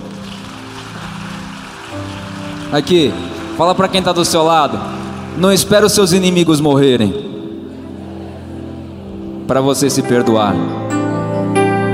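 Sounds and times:
applause for grandfather: 0.0 - 6.7
speech: 1.9 - 7.2, 9.5 - 10.8.

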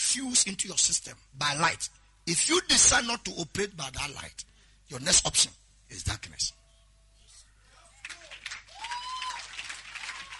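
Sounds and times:
speech: 0.1 - 6.6
voices calling out and cheering: 7.7 - 10.3
audience clapping: 7.9 - 10.3.

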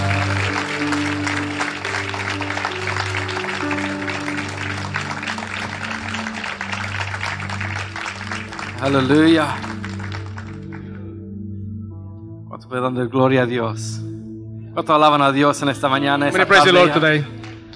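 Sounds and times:
audience applause: 0.0 - 10.9
low sustained keyboard notes: 0.0 - 17.7
speech: 8.8 - 9.7, 12.7 - 14.0, 14.8 - 17.4.

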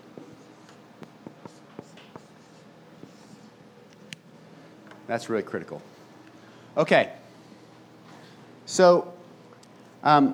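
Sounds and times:
writing on a board during a lesson: 0.2 - 3.6
speech: 5.1 - 6.0, 6.8 - 7.2, 8.7 - 9.2, 10.0 - 10.3.

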